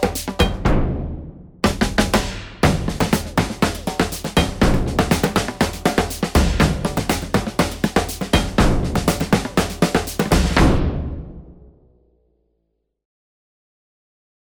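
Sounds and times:
samba snare drum: 0:00.0 - 0:11.7.

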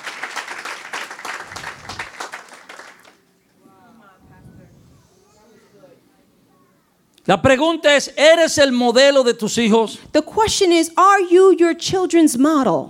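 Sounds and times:
audience applause, mostly women clapping: 0:00.0 - 0:03.3
speech: 0:07.3 - 0:12.8.

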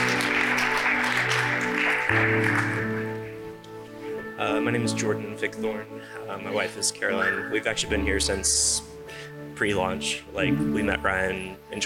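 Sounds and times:
audience clapping: 0:00.0 - 0:03.4
speech: 0:04.4 - 0:11.8.

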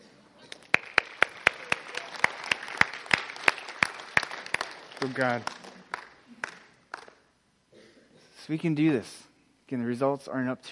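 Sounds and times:
audience applause: 0:00.6 - 0:07.2
speech: 0:05.0 - 0:05.6, 0:08.5 - 0:10.7.

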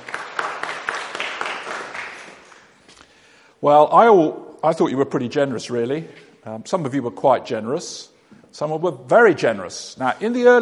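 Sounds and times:
audience applause: 0:00.0 - 0:02.7
speech: 0:03.6 - 0:10.5.

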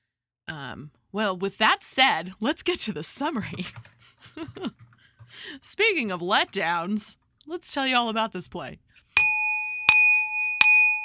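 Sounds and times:
speech: 0:00.5 - 0:08.9
dinner bell ringing: 0:09.2 - 0:11.0.

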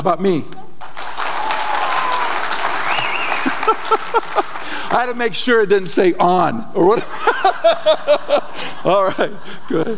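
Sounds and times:
speech: 0:00.0 - 0:00.6, 0:03.7 - 0:09.9
audience applause: 0:00.8 - 0:05.2
laughter: 0:03.3 - 0:05.0, 0:06.9 - 0:09.9.

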